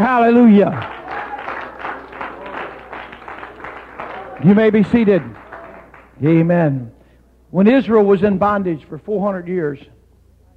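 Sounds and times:
speech: 0.0s - 1.0s, 4.4s - 5.4s, 6.2s - 10.0s
audience clapping hands: 0.4s - 6.6s
faint murmur of voices: 0.7s - 6.2s.

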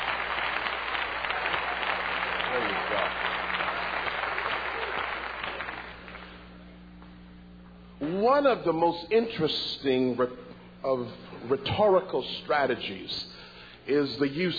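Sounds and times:
audience clapping hands: 0.0s - 6.5s
speech: 2.6s - 3.3s, 8.2s - 14.5s.

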